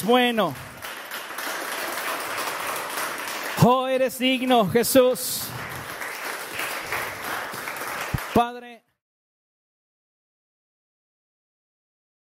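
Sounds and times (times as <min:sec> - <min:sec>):
speech: 0:00.0 - 0:00.6, 0:03.6 - 0:05.7, 0:08.4 - 0:08.8
audience applauding in church: 0:00.0 - 0:08.6.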